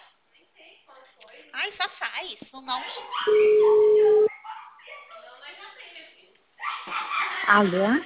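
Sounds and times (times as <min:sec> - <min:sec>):
speech: 0:01.6 - 0:04.2, 0:07.5 - 0:08.0
telephone tone after a dropped call: 0:03.3 - 0:04.3.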